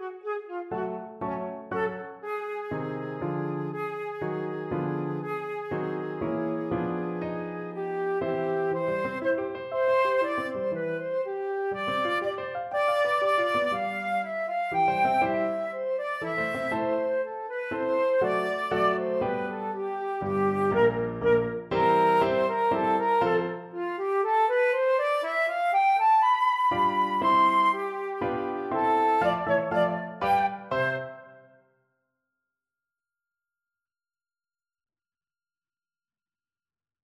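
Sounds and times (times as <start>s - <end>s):
flute playing a classical piece: 0.0s - 31.6s.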